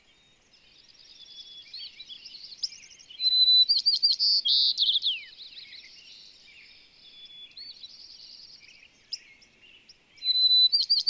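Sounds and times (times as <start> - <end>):
bird song: 0.0 - 11.0.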